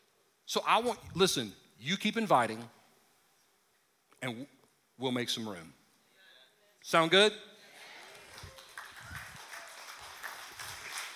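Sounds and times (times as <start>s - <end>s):
speech: 0.5s - 2.8s, 4.2s - 5.8s, 6.8s - 7.5s
crowd clapping: 8.0s - 11.1s.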